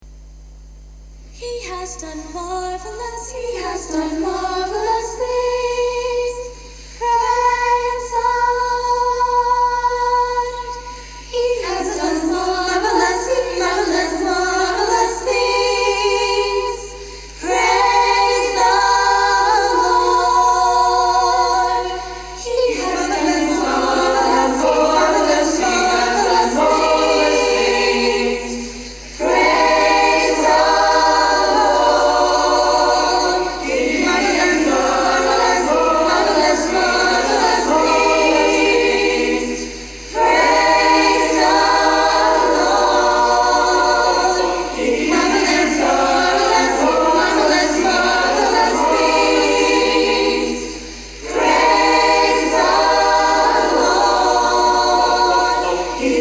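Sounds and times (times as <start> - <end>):
English music: 1.5 - 56.2.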